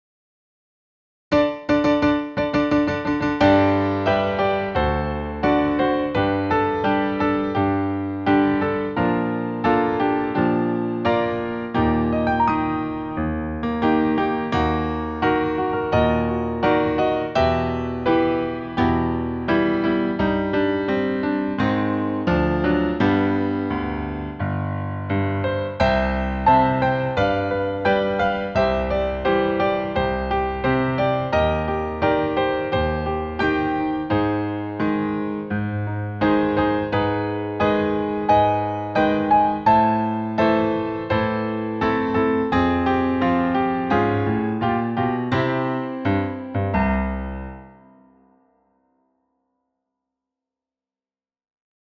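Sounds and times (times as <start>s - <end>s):
piano: 1.3s - 48.9s.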